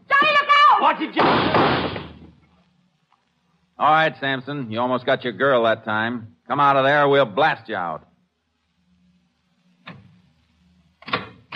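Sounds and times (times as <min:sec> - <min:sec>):
speech: 0:00.8 - 0:02.0, 0:03.8 - 0:08.1
closet door forced open with a heavy thud: 0:01.2 - 0:02.3.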